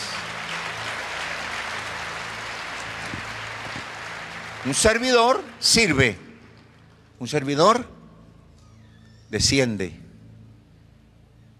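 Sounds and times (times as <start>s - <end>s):
audience applauding: 0.0s - 6.9s
speech: 4.6s - 6.2s, 7.2s - 8.0s, 9.3s - 10.0s.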